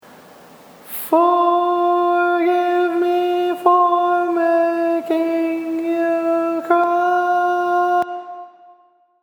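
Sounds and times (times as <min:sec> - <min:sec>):
tenor singing barbershop tags: 0:00.9 - 0:08.7.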